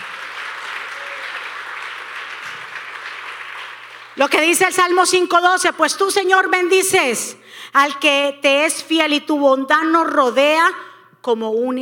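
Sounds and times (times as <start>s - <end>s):
loud audience applause: 0.0s - 4.4s
speech: 4.2s - 11.8s.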